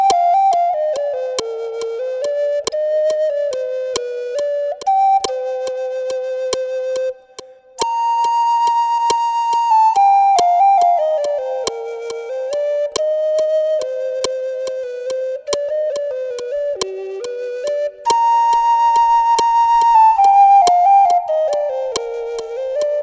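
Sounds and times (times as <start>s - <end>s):
flute melody: 0.0s - 23.0s.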